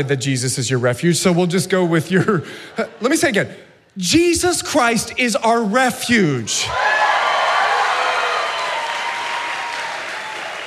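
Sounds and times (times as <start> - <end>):
speech: 0.0 - 7.1
audience applause: 6.8 - 10.6.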